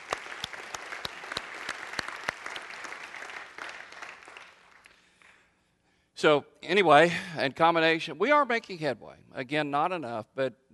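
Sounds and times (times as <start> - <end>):
audience applause: 0.0 - 5.1
speech: 6.2 - 10.6.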